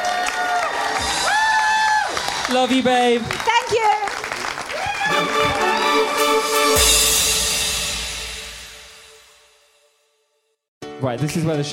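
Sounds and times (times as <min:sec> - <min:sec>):
high whoops and rising shouts: 0:00.0 - 0:02.4, 0:04.7 - 0:06.3
audience applause and cheering: 0:00.0 - 0:08.4
speech: 0:02.5 - 0:04.0, 0:11.0 - 0:11.7.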